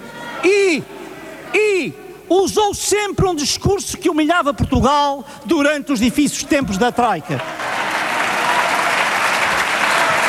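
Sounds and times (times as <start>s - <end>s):
speech: 0.4s - 1.0s, 1.8s - 7.6s
applause in parliament: 7.3s - 10.2s.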